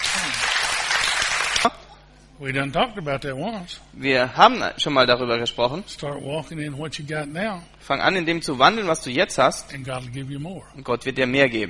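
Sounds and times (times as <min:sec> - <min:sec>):
audience applauding: 0:00.0 - 0:01.7
speech: 0:02.4 - 0:11.6.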